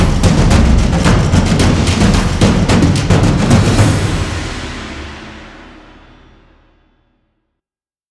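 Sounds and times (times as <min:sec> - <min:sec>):
cinematic fast tempo action drum hits for a trailer: 0:00.0 - 0:06.5.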